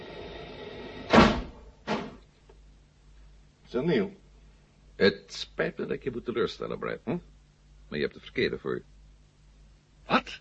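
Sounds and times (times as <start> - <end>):
steady low hum: 0.0 - 10.4
hatch or door being shut during final checks: 1.1 - 2.2
speech: 3.7 - 4.2, 5.0 - 7.3, 7.9 - 8.9.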